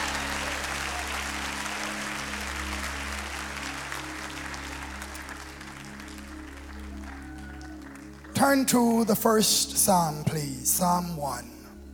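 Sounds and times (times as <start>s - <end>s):
audience applause: 0.0s - 9.1s
speech: 8.4s - 11.5s.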